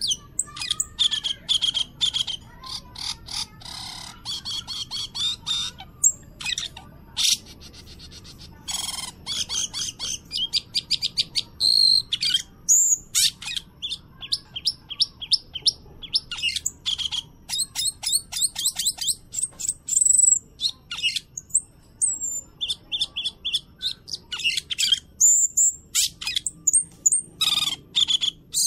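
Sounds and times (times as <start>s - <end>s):
bird singing: 0.0s - 28.6s.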